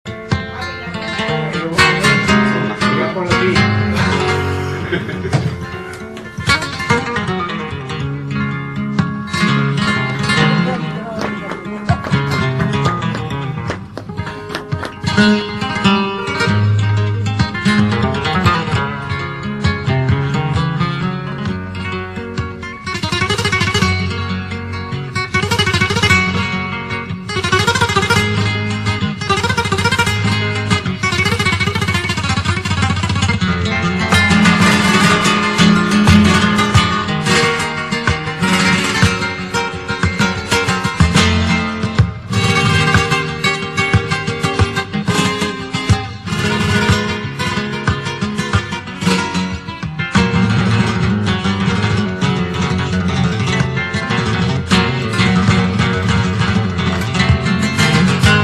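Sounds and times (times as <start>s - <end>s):
solea music: 0.0s - 58.4s
laughter: 4.2s - 6.0s.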